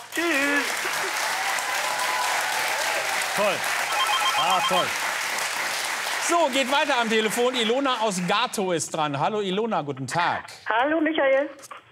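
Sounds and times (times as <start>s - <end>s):
studio applause on a radio phone-in game: 0.0s - 9.2s
speech: 3.4s - 3.8s, 4.4s - 5.1s, 6.3s - 11.9s.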